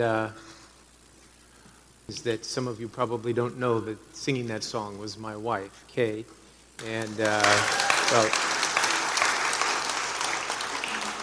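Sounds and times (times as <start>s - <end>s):
speech: 0.0s - 0.5s, 2.1s - 8.5s
audience applause after a song: 6.8s - 11.2s.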